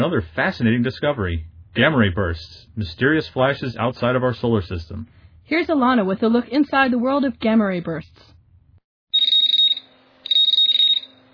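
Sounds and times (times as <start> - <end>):
speech: 0.0 - 8.3
alert system beep: 9.2 - 11.1.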